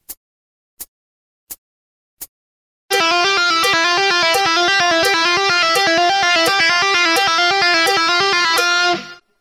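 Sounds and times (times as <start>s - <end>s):
guitar lick: 2.9s - 9.2s.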